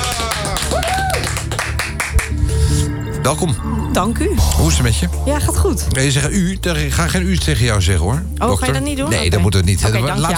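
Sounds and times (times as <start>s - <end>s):
studio audience applause: 0.0s - 2.4s
speech: 3.2s - 10.3s.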